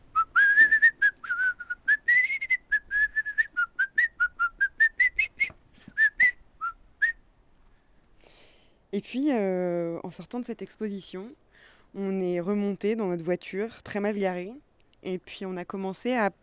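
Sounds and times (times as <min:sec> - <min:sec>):
person whistling a bird-like song: 0:00.2 - 0:07.2
speech: 0:09.0 - 0:16.4.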